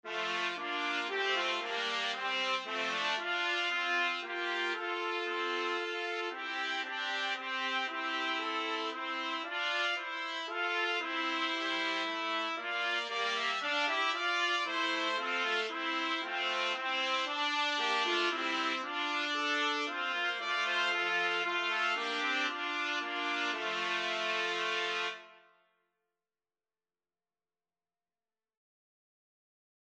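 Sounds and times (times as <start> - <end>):
trumpet trio playing: 0.1 - 25.4.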